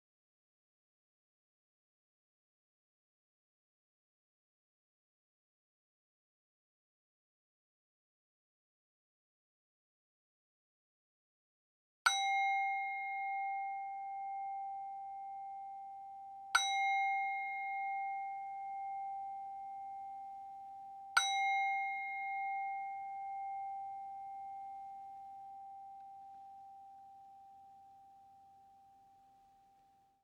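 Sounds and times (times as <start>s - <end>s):
meditation timer bell: 12.1s - 30.2s.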